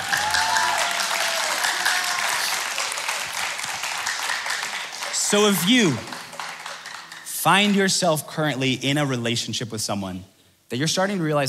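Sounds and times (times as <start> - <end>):
faint whoops: 0.0 - 3.0
audience clapping: 0.0 - 8.2
speech: 5.3 - 6.1, 7.4 - 11.4.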